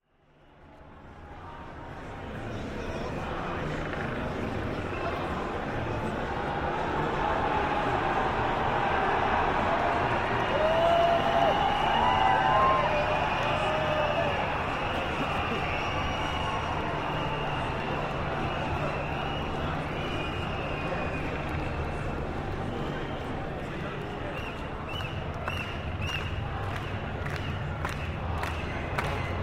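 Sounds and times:
helicopters: 0:01.7 - 0:10.5, 0:11.2 - 0:24.9
protest crowd cheering: 0:04.7 - 0:29.4.

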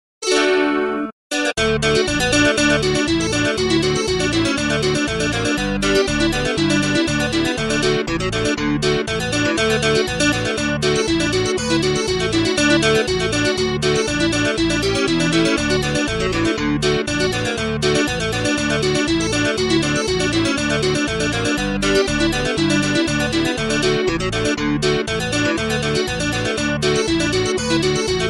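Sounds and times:
traditional bluegrass on electric mandolin: 0:00.2 - 0:28.2.

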